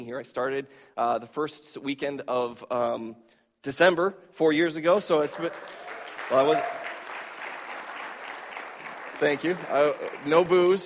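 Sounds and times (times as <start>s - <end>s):
speech: 0.0s - 6.8s, 9.2s - 10.8s
audience applause: 5.1s - 10.8s.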